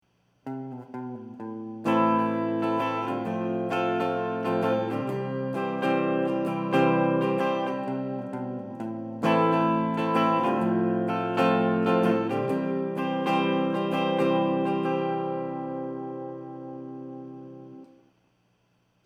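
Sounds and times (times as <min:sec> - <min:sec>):
electric guitar: 0:00.4 - 0:18.0.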